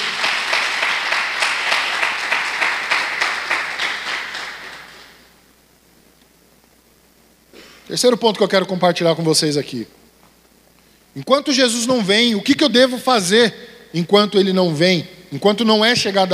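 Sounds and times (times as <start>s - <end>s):
audience applause: 0.0s - 5.2s
speech: 7.9s - 10.0s, 11.2s - 16.3s.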